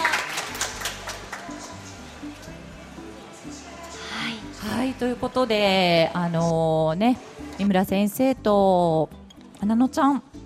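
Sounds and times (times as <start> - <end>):
audience applause: 0.0 - 1.6
speech: 4.9 - 10.3.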